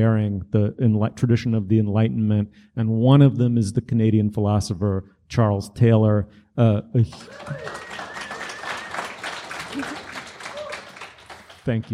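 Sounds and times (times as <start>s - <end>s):
speech: 0.0s - 7.9s, 9.7s - 10.0s, 11.7s - 11.9s
audience applause: 7.1s - 11.9s.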